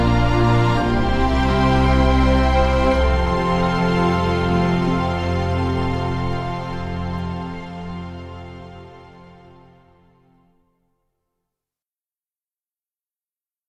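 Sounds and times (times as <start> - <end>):
instrumental music: 0.0 - 10.6.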